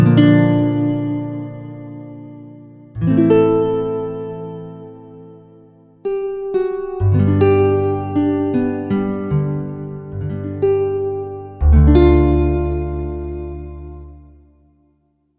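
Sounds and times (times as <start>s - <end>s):
nylon guitar patch on a synthesizer: 0.0s - 14.8s.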